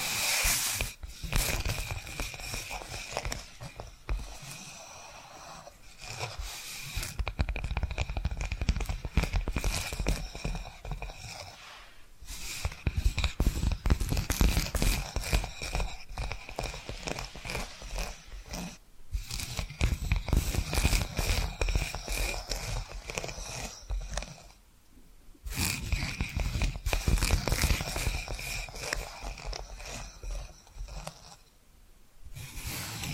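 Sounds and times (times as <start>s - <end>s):
tapping and scratching: 0.0s - 11.6s, 12.3s - 24.6s, 25.5s - 31.5s, 32.4s - 33.1s.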